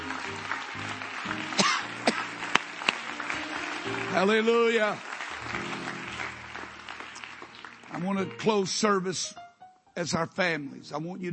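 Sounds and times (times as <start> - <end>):
audience clapping hands: 0.0 - 9.0
speech: 4.1 - 5.6, 8.0 - 9.4, 10.0 - 11.3.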